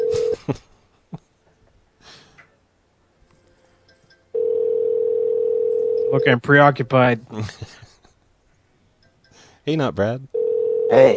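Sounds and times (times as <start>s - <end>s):
telephone ringing: 0.0s - 0.4s, 4.3s - 6.4s, 10.3s - 11.1s
speech: 6.1s - 7.9s, 9.6s - 11.1s.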